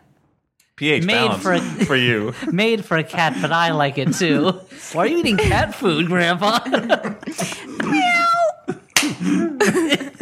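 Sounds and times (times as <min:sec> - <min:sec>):
speech: 0:00.8 - 0:08.0
laughter: 0:01.0 - 0:10.2
hands clapping like a high five slap: 0:08.9 - 0:09.3.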